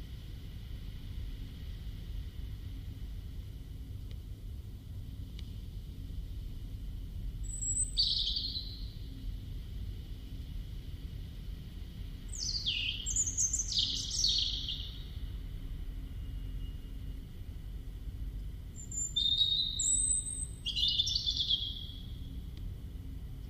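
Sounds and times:
low rumble: 0.0 - 23.4
European robin singing: 7.4 - 8.9, 12.3 - 15.2, 18.8 - 22.2.

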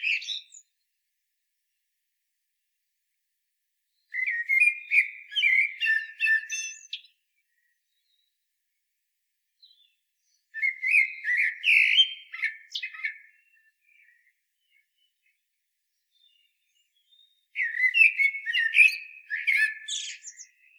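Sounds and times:
common blackbird Turdus merula singing fluted phrases: 0.0 - 0.8, 3.9 - 8.4, 9.6 - 20.7.

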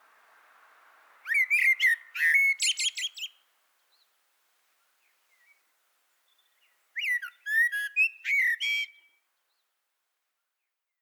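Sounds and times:
common blackbird song: 1.2 - 4.2, 4.8 - 9.8.

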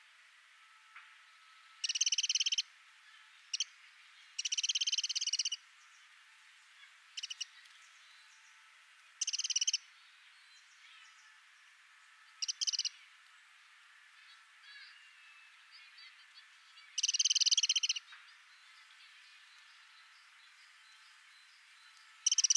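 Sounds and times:
soft faint chirps: 1.2 - 22.5
Eurasian wren rattling call: 1.8 - 2.6, 4.4 - 5.6, 7.2 - 7.5, 9.2 - 9.8, 12.4 - 13.0, 17.0 - 18.0, 22.2 - 22.5.

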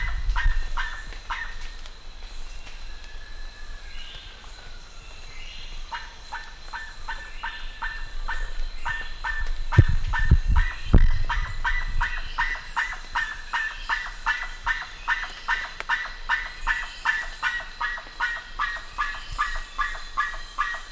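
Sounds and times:
bird calls: 0.0 - 20.9
low thumping and rumbling: 8.6 - 12.4.

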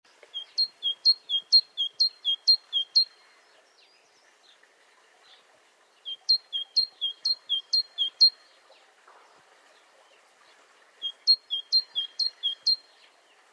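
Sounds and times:
great tit song: 0.1 - 3.1, 6.1 - 8.4, 11.0 - 12.8.

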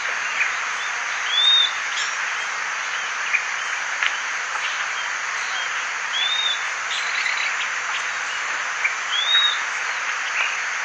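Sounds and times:
constant hiss: 0.0 - 10.8
bird high arched whistle: 9.1 - 9.6.

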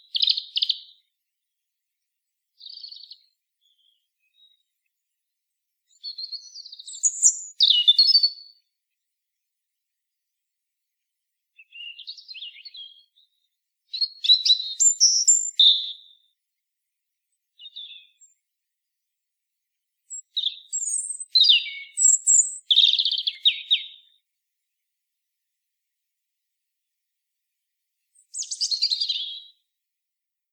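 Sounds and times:
European robin singing: 0.0 - 1.1, 2.6 - 4.7, 5.9 - 8.7, 11.6 - 16.3, 17.6 - 18.4, 20.1 - 24.2, 28.2 - 29.6.

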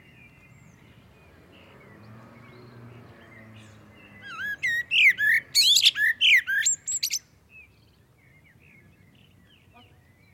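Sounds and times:
common blackbird whistled song: 4.1 - 10.3.

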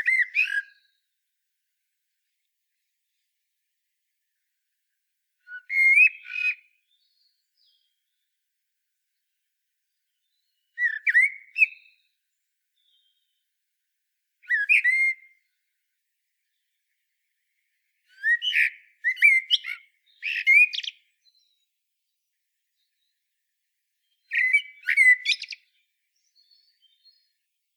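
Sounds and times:
common blackbird whistled song: 0.0 - 1.0, 5.4 - 8.0, 10.2 - 12.2, 14.4 - 15.5, 18.0 - 21.6, 24.0 - 27.4.

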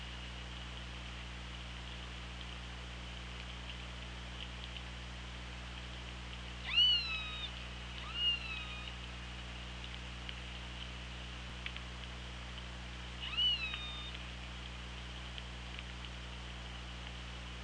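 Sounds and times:
steady low underwater hum: 0.0 - 17.6
killer whale pulsed calls: 6.6 - 9.0, 13.2 - 14.2.

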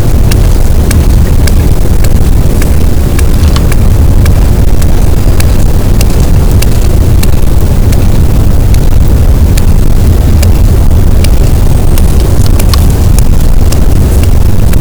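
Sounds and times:
boat engine rumble: 0.0 - 14.8
sperm whale clicks: 0.0 - 14.8.

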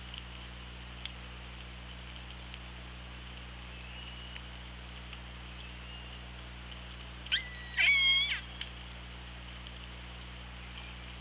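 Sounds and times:
constant low hum: 0.0 - 11.2
killer whale calls: 7.3 - 8.5.

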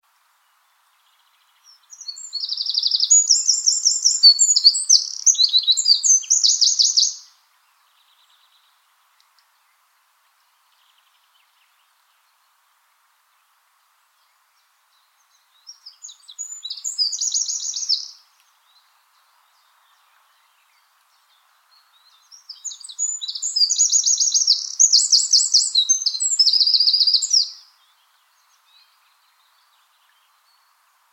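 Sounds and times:
Eurasian wren singing: 1.2 - 7.3, 15.0 - 30.7.

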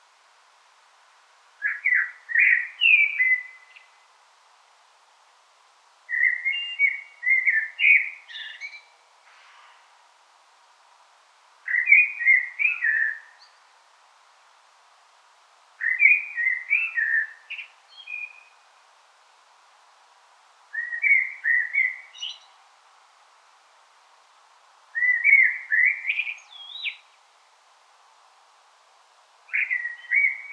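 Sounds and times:
common blackbird fluty song: 1.6 - 4.0, 6.1 - 9.0, 11.7 - 13.7, 15.8 - 18.7, 20.7 - 22.6, 25.0 - 27.2, 29.5 - 30.5.

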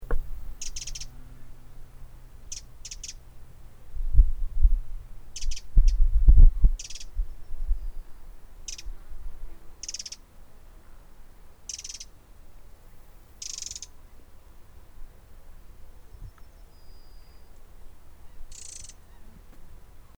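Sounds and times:
low rumbling thuds: 0.0 - 7.9
Eurasian wren ticking calls: 0.0 - 8.0, 8.6 - 9.0, 9.8 - 10.3, 11.7 - 12.2, 13.3 - 14.0, 18.2 - 19.3.

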